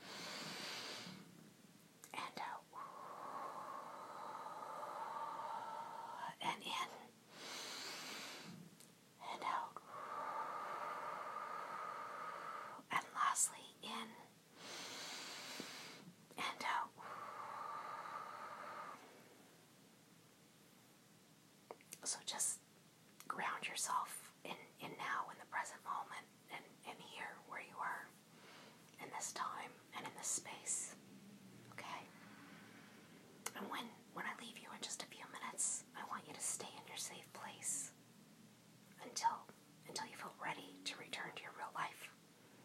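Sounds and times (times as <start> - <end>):
slow guided breathing: 0.0 - 1.4, 2.3 - 8.7, 9.6 - 12.9, 14.5 - 19.6, 28.3 - 28.9, 32.0 - 33.3
soft breathy whispering: 2.0 - 19.4, 21.7 - 28.3, 28.9 - 38.0, 38.9 - 42.6.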